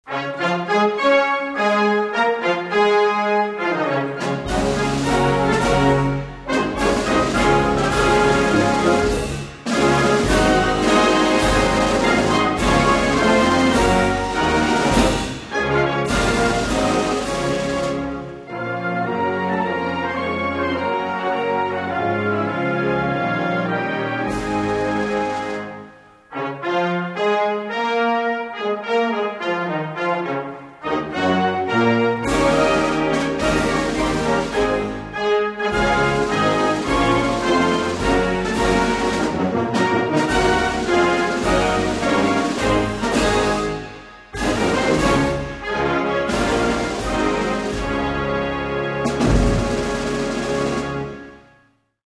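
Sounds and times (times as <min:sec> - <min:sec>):
instrumental national anthem: 0:00.0 - 0:51.8.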